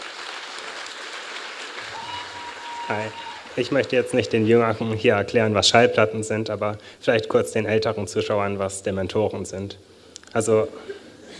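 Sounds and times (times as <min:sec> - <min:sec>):
audience applause welcoming a poet on stage at a poetry event: 0:00.0 - 0:04.0
speech: 0:02.9 - 0:11.0.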